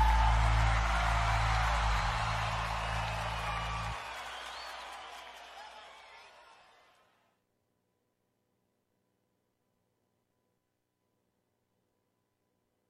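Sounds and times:
low music: 0:00.0 - 0:04.0
audience applause and cheering for a singer at a show: 0:00.0 - 0:07.2.

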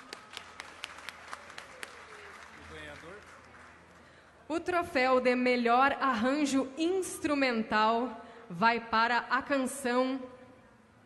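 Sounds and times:
scattered audience applause: 0:00.0 - 0:04.1
speech: 0:04.5 - 0:10.4.

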